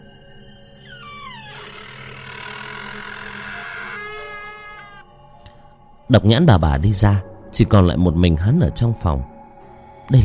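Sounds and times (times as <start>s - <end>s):
door creaking open: 0.8s - 5.0s
speech: 6.1s - 9.4s, 10.1s - 10.2s.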